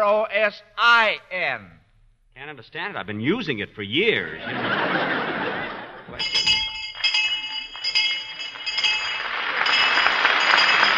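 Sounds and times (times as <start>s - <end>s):
speech: 0.0s - 1.8s, 2.4s - 5.3s
laughter: 4.3s - 6.3s
bell ringing: 6.2s - 10.9s.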